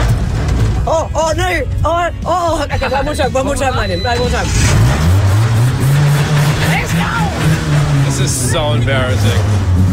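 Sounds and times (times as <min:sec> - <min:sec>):
speech: 0:00.9 - 0:05.4, 0:08.2 - 0:09.8
mini stock race car engine revving: 0:03.3 - 0:09.9.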